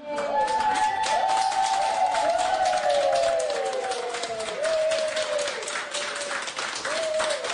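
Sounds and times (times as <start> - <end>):
applause: 0.0 - 7.5.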